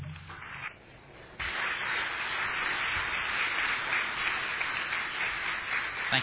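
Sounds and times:
audience applause welcoming a speaker at a church gathering: 0:01.4 - 0:06.2.

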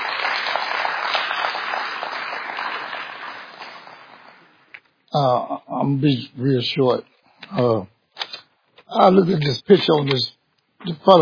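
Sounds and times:
audience hand clapping in praise: 0:00.0 - 0:04.7
speech: 0:05.2 - 0:07.9, 0:08.9 - 0:11.2.

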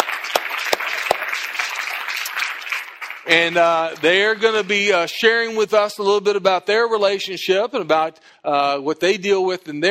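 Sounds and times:
audience applause welcoming a couple onto a stage: 0:00.0 - 0:05.1
speech: 0:03.3 - 0:09.8.

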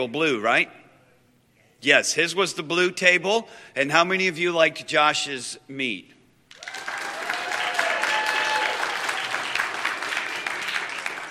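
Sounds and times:
speech: 0:00.0 - 0:00.8, 0:01.8 - 0:06.2
audience clapping: 0:06.5 - 0:11.2.

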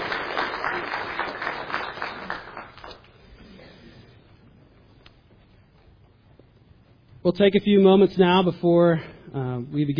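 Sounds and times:
church audience clapping: 0:00.0 - 0:03.3
speech: 0:07.3 - 0:09.9.

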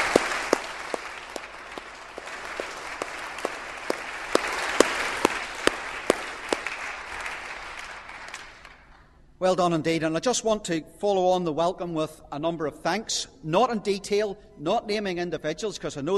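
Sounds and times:
audience applauding the children: 0:00.0 - 0:08.8
speech: 0:09.4 - 0:16.1.

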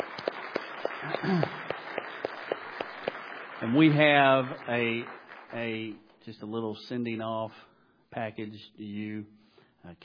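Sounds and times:
audience applause: 0:00.0 - 0:06.0
speech: 0:01.1 - 0:01.6, 0:03.6 - 0:10.0.

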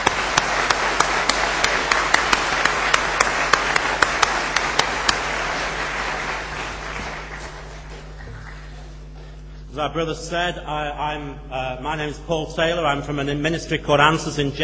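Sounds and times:
audience applause: 0:00.0 - 0:09.1
speech: 0:09.8 - 0:14.6.

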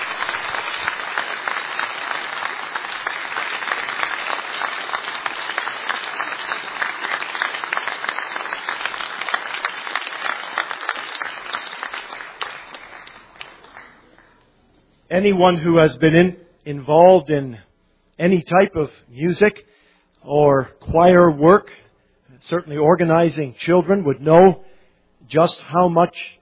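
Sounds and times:
audience applause: 0:00.0 - 0:14.4
speech: 0:15.2 - 0:21.8, 0:22.4 - 0:24.6, 0:25.3 - 0:26.4.

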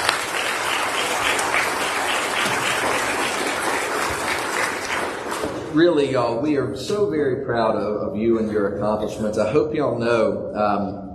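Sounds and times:
steady loud applause from a crowd: 0:00.0 - 0:05.7
speech: 0:05.8 - 0:11.1.

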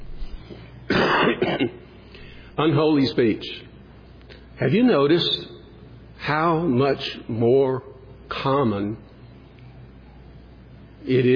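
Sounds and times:
person coughing: 0:00.9 - 0:01.8
speech: 0:02.6 - 0:03.7, 0:04.6 - 0:05.5, 0:06.2 - 0:09.1, 0:11.0 - 0:11.3.

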